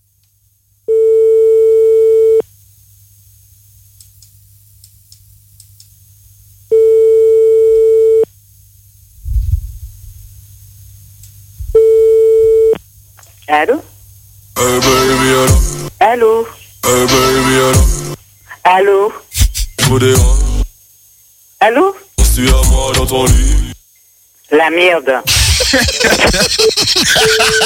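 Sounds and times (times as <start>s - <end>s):
telephone line tones: 0.9s - 2.4s, 6.7s - 8.2s, 11.8s - 12.8s
speech: 13.5s - 13.9s, 14.8s - 18.0s, 18.8s - 19.2s, 19.9s - 20.4s, 21.6s - 23.7s, 24.5s - 27.6s
laughter: 25.3s - 27.6s.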